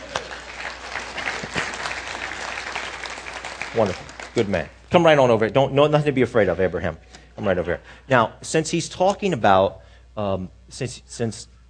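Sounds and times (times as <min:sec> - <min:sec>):
crowd clapping: 0:00.0 - 0:04.8
speech: 0:03.8 - 0:11.5.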